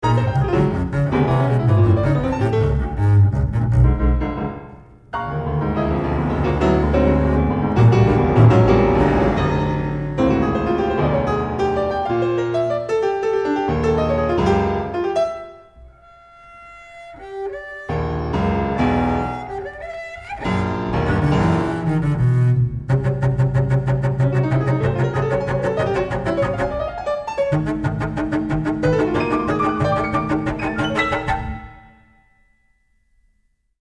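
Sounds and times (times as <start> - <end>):
double bass: 0.0 - 11.8, 20.4 - 31.8
piano: 0.0 - 33.5.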